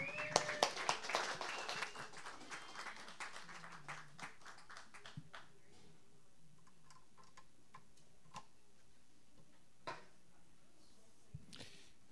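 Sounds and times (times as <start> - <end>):
audience applause welcoming a performer: 0.0 - 5.4.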